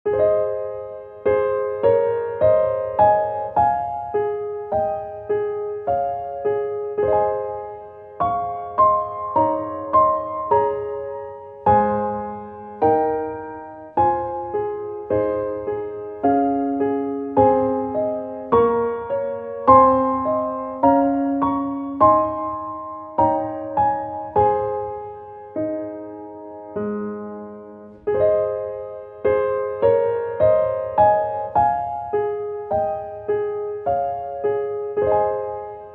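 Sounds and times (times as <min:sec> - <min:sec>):
piano: 0:00.0 - 0:35.9.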